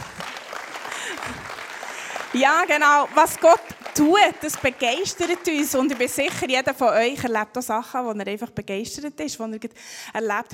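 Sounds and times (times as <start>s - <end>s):
audience clapping: 0.0s - 6.8s
speech: 2.4s - 10.5s.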